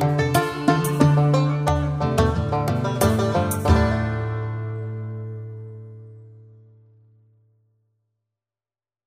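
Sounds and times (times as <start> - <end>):
banjo: 0.0 - 6.7.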